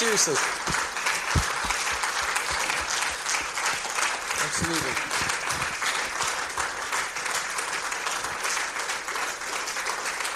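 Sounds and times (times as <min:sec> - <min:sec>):
round of applause: 0:00.0 - 0:10.3
speech: 0:00.2 - 0:00.8, 0:04.6 - 0:05.3.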